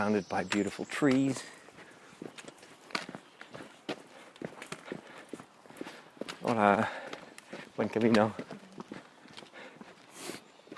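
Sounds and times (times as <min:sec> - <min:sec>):
speech: 0:00.0 - 0:01.6, 0:06.5 - 0:07.0, 0:07.8 - 0:08.4
footsteps walking downhill on a bumpy forest trail: 0:00.0 - 0:10.7.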